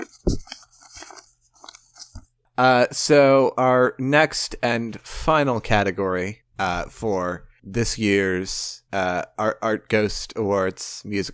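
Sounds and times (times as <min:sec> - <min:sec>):
playing cards shuffling: 0:00.0 - 0:02.3
speech: 0:02.6 - 0:11.3.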